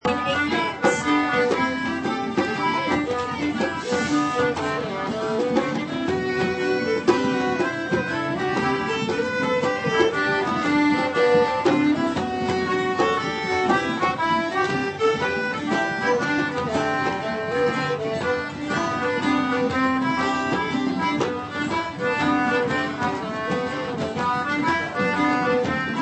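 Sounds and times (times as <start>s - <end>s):
medieval melody: 0.0s - 26.0s.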